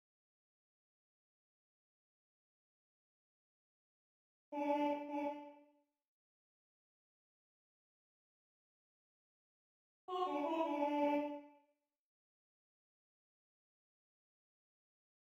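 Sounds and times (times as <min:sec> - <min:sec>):
alto voices singing: 0:10.1 - 0:11.4.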